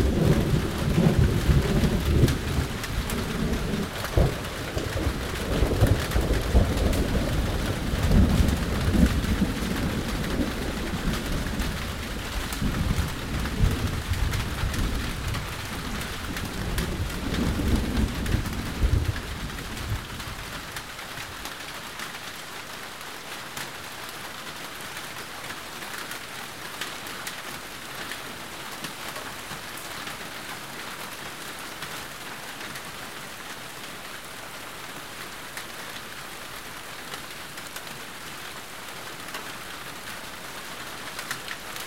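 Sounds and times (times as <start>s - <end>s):
thunder: 0.0s - 20.3s
rain: 0.0s - 41.8s.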